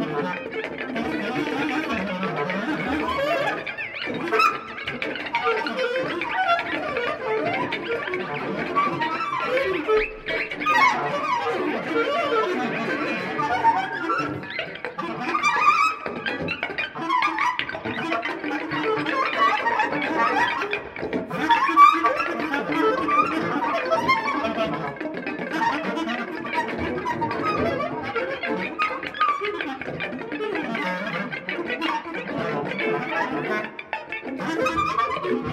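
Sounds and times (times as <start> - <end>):
clarinet: 0.0 - 35.5
guitar: 0.0 - 35.5.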